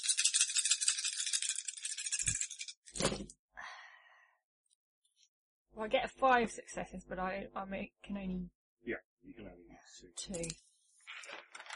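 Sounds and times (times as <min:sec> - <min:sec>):
handful of dice rattling: 0:00.0 - 0:02.8
speech: 0:05.8 - 0:10.6.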